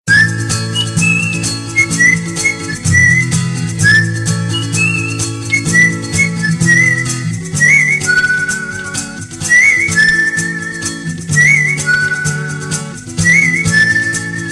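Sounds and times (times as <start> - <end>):
whistle: 0.1 - 14.5.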